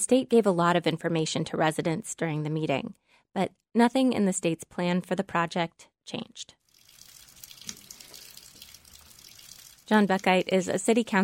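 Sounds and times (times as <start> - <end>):
speech: 0.0 - 6.6, 9.9 - 11.2
rainwater dripping from an awning at an airport as a spring storm ends: 6.7 - 11.1.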